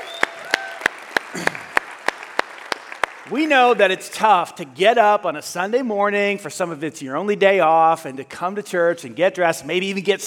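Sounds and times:
rhythmic clapping welcoming first-time guests at a church service: 0:00.0 - 0:03.8
speech: 0:03.3 - 0:10.2.

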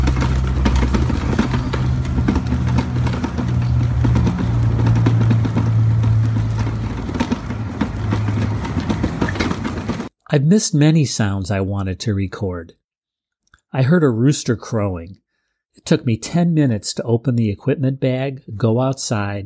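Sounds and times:
electric wheelchair driving on cobblestones in Sarria: 0:00.0 - 0:10.1
speech: 0:10.3 - 0:12.8, 0:13.7 - 0:15.2, 0:15.8 - 0:19.4.

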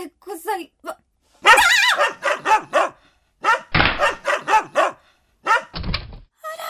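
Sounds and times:
speech: 0:00.0 - 0:01.0
bulldog or Tosa-type dog barking: 0:01.4 - 0:05.8.

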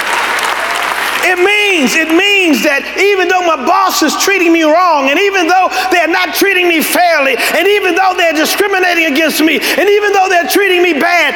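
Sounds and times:
audience clapping: 0:00.0 - 0:02.6
speech: 0:01.3 - 0:11.3.

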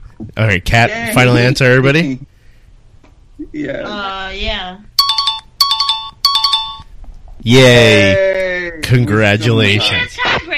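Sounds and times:
speech: 0:00.4 - 0:02.3, 0:03.6 - 0:04.9, 0:07.4 - 0:10.5
quiz ring-in electronic bell trill: 0:05.0 - 0:06.9.

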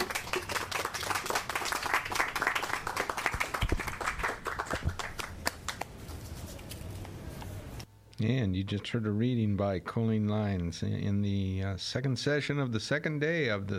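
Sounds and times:
audience applause: 0:00.0 - 0:05.8
speech: 0:08.2 - 0:13.7.

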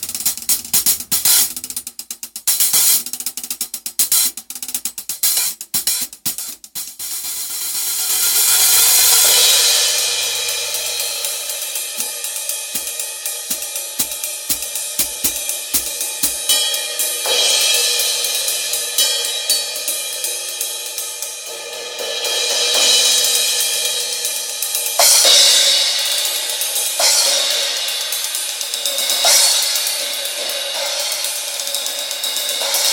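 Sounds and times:
B8 ride and B20 ride cymbals: 0:00.0 - 0:32.9
hi-hats: 0:00.0 - 0:32.9
splash cymbal: 0:06.8 - 0:32.9.

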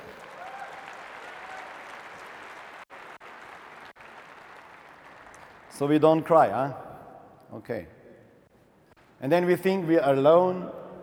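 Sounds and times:
crowd applauding: 0:00.0 - 0:05.7
speech: 0:05.8 - 0:06.8, 0:07.5 - 0:08.0, 0:09.2 - 0:11.0.

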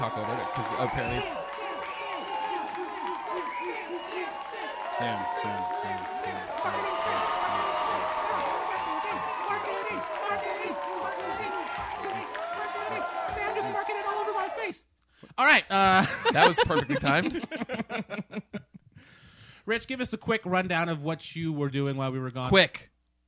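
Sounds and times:
speech: 0:00.0 - 0:01.7, 0:03.6 - 0:18.6, 0:19.7 - 0:22.9
applause played as a sound effect: 0:00.0 - 0:14.6
laughter: 0:15.8 - 0:18.8.

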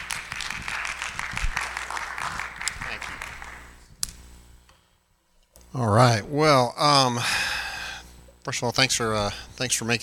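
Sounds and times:
crowd clapping: 0:00.0 - 0:03.8
speech: 0:05.7 - 0:07.4, 0:08.4 - 0:10.0.

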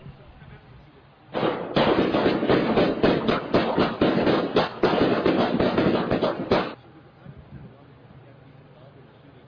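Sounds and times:
gunshots from a shooting in Rosamond recorded by a security camera: 0:01.4 - 0:06.8.

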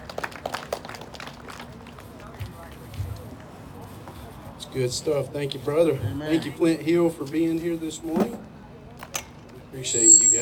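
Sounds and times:
audience clapping: 0:00.0 - 0:02.5
speech: 0:04.7 - 0:08.5, 0:09.8 - 0:10.3.

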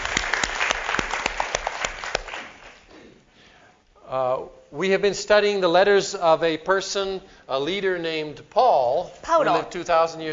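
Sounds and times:
audience applause of encouragement: 0:00.0 - 0:02.8
speech: 0:04.1 - 0:10.3.

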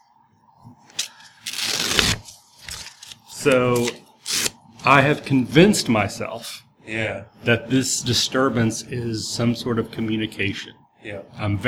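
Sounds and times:
hope card from a Ten Candles game ripping: 0:00.9 - 0:04.6
speech: 0:03.4 - 0:04.0, 0:04.8 - 0:11.6.

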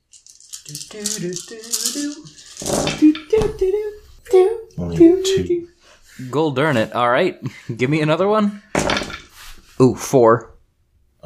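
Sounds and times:
dice rolling: 0:00.0 - 0:03.6, 0:08.8 - 0:09.4
speech: 0:00.7 - 0:09.0, 0:09.8 - 0:10.5.

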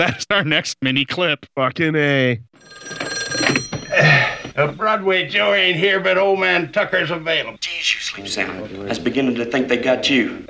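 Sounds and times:
speech: 0:00.0 - 0:10.4
telephone ringing in film clip: 0:02.6 - 0:04.8.

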